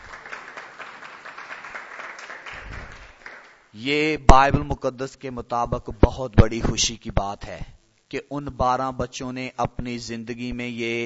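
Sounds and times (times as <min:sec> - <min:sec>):
audience applause: 0:00.0 - 0:03.6
speech: 0:03.8 - 0:11.0.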